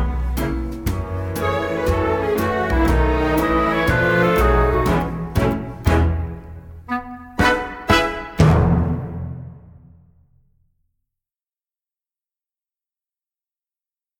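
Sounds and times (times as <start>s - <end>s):
backing music: 0.0s - 10.0s.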